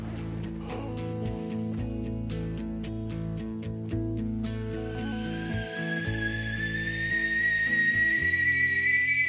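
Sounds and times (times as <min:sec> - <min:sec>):
music with rhythmic ticking: 0:00.0 - 0:09.2
kettle hissing with steam: 0:04.9 - 0:09.2.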